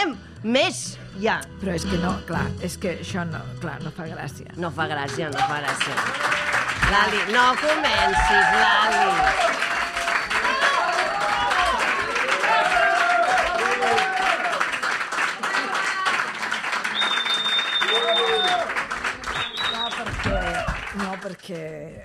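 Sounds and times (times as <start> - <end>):
speech: 0.4 - 9.7, 21.3 - 22.0
audience applause: 5.3 - 21.6.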